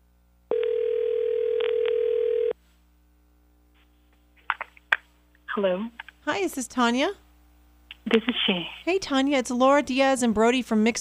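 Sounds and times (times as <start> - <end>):
telephone dial tone: 0.5 - 2.6
speech: 5.6 - 7.2, 8.1 - 11.0.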